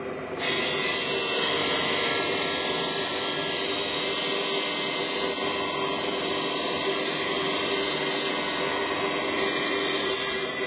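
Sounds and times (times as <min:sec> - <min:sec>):
400 mm diamond saw cutting granite: 0:00.4 - 0:10.6.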